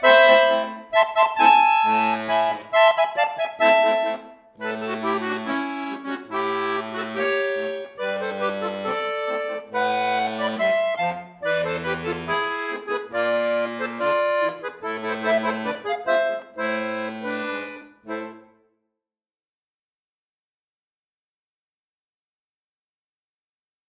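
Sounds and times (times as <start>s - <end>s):
miniature musette cha cha cha music: 0.0s - 18.6s.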